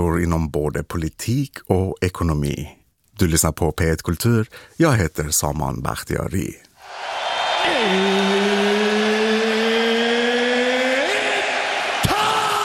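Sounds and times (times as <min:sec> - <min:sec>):
speech: 0:00.0 - 0:07.1, 0:07.8 - 0:08.4
UFC arena crowd noise as big fight begins: 0:06.8 - 0:12.5.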